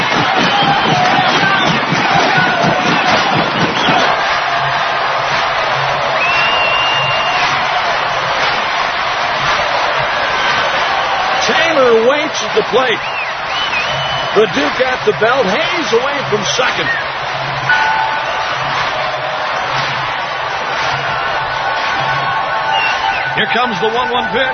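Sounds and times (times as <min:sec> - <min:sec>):
stadium crowd cheering: 0:00.0 - 0:24.5
stadium crowd rhythmic stomping: 0:00.0 - 0:24.5
speech: 0:12.5 - 0:13.2, 0:14.3 - 0:17.1, 0:23.4 - 0:24.5.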